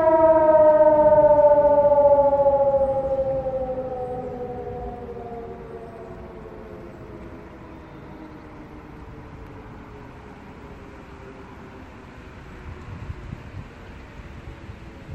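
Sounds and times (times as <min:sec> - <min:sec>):
public warning siren tones: 0:00.0 - 0:10.5.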